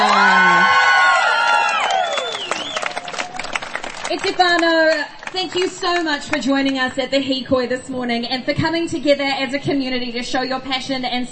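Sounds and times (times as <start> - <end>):
crowd applause and cheering: 0.0 - 6.4
speech: 4.2 - 11.3.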